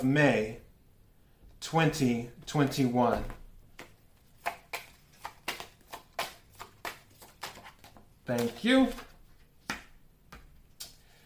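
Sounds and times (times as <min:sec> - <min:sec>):
speech: 0:00.0 - 0:00.6, 0:01.6 - 0:03.4, 0:08.3 - 0:09.1
tarot cards being shuffled for a reading: 0:03.8 - 0:10.9.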